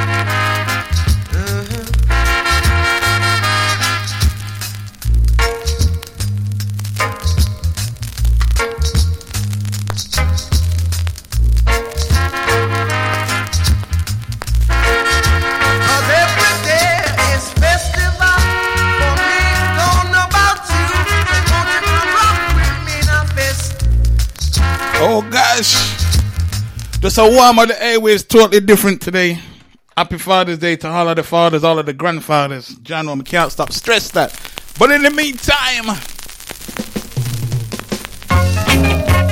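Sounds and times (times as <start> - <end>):
loud music with a steady bass line and bright melodic tones: 0.0 - 27.5, 36.7 - 39.3
vinyl record crackle and pops: 0.0 - 29.8, 32.7 - 39.3
speech: 27.2 - 37.0.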